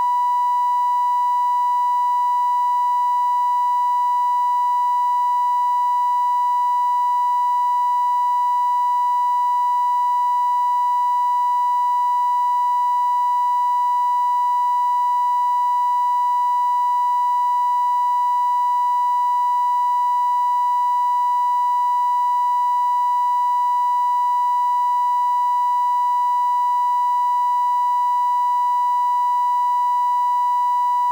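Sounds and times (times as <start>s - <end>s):
sine wave tone: 0.0s - 31.1s.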